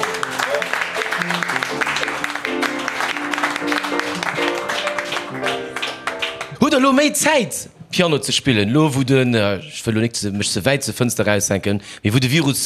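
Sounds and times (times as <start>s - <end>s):
audience applause: 0.0s - 6.6s
speech: 6.8s - 12.6s.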